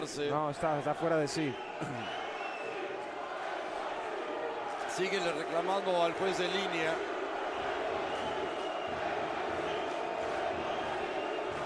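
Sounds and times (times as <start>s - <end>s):
speech: 0.0s - 2.2s, 5.0s - 7.1s
stadium crowd chanting: 1.8s - 5.4s, 6.0s - 11.6s.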